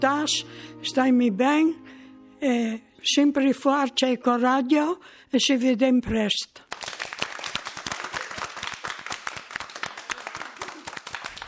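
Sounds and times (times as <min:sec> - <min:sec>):
speech: 0:00.0 - 0:06.6
audience applause: 0:06.7 - 0:11.4.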